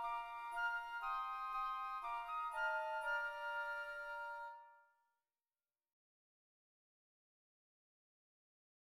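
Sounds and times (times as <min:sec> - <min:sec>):
flutes playing: 0:00.0 - 0:04.9.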